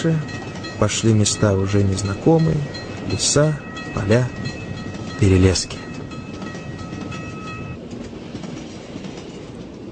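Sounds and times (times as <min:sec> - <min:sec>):
speech: 0:00.0 - 0:04.6, 0:05.2 - 0:05.8
sustained high ringing tones: 0:00.0 - 0:07.8
train wheels rumbling on rails arriving at a station at dawn: 0:00.0 - 0:09.9.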